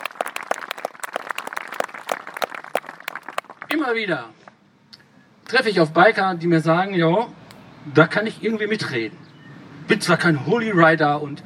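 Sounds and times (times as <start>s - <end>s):
audience applause: 0.0s - 3.8s
speech: 3.7s - 4.5s, 5.5s - 9.2s, 9.9s - 11.4s.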